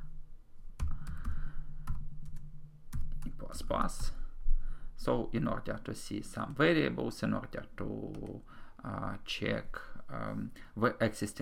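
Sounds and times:
faint low hum: 0.0s - 11.4s
quiet typing on a computer keyboard while debugging code in the Unity editor: 0.8s - 3.3s
speech: 3.6s - 4.2s, 5.0s - 11.4s.

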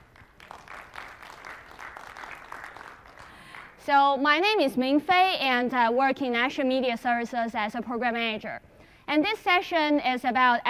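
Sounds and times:
crowd clapping: 0.0s - 3.8s
speech: 3.9s - 10.6s.

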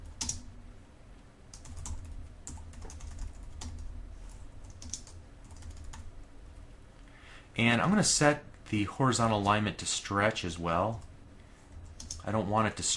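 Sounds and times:
keyboard typing: 0.0s - 0.4s, 1.5s - 3.9s, 4.6s - 6.1s, 11.8s - 12.2s
speech: 7.6s - 11.1s, 12.2s - 12.9s.

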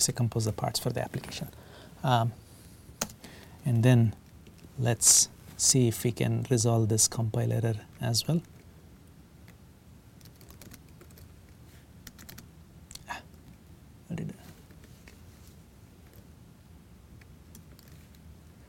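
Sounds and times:
speech: 0.0s - 2.4s, 3.6s - 4.2s, 4.8s - 8.6s
typing on a computer keyboard: 10.2s - 11.3s, 12.0s - 12.5s, 17.5s - 18.0s.

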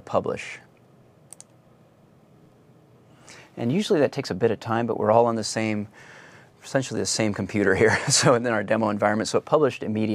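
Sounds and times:
low hiss: 0.0s - 10.1s
speech: 0.1s - 0.7s, 3.6s - 10.1s
computer mouse clicks pressing the publish button: 1.3s - 1.6s.

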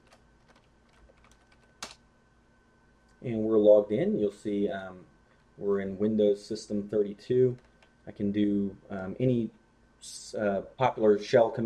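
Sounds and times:
computer keyboard typing a password: 0.0s - 2.0s, 7.5s - 7.9s
speech: 3.2s - 11.6s.

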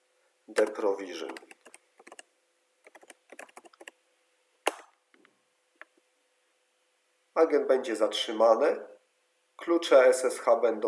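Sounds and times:
speech: 0.5s - 1.6s, 7.4s - 9.0s, 9.6s - 10.8s
keyboard typing: 0.6s - 4.0s.

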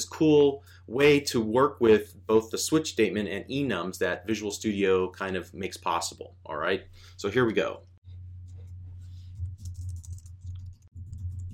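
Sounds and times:
speech: 0.0s - 7.9s
steady low hum: 0.0s - 11.5s
typing on a computer keyboard in Visual Studio: 9.4s - 11.5s.

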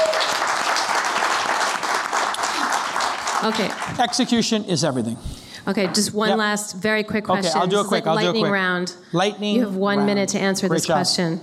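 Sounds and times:
audience applause: 0.0s - 4.5s
speech: 3.4s - 11.4s.

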